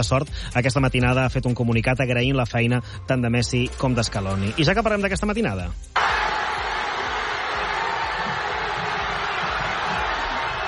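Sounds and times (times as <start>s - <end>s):
speech: 0.0s - 6.0s
large crowd shouting celebrating football victory: 6.0s - 10.6s.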